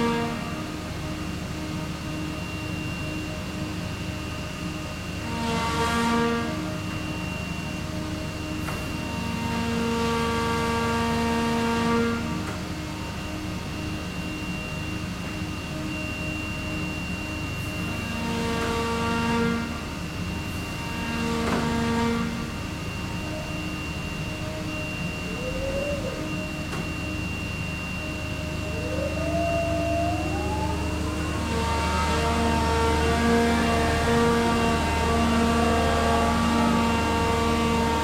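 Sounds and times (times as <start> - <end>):
harbour mobile crane machine room noise in Reyðarfjörður: 0.0 - 38.0.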